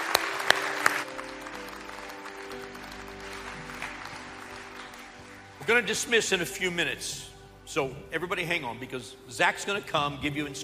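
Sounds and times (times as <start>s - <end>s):
church congregation clapping to welcome new believers: 0.0s - 6.6s
speech: 5.7s - 10.6s.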